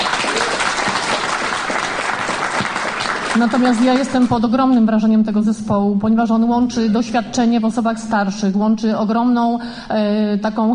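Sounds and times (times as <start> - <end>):
audience applause: 0.0 - 4.3
speech: 3.4 - 10.7.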